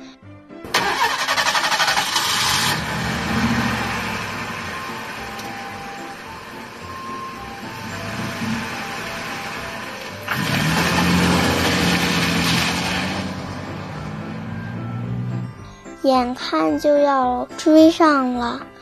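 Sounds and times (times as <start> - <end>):
bus engine cranking, starting and rumbling as the bus pulls away: 0.7 - 15.7
speech: 16.1 - 18.7.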